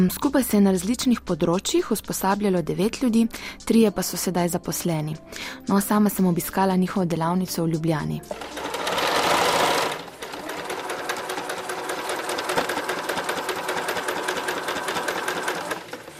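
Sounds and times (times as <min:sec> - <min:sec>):
speech: 0:00.0 - 0:08.8
sewing machine stitching slippers from old jeans: 0:08.3 - 0:16.1.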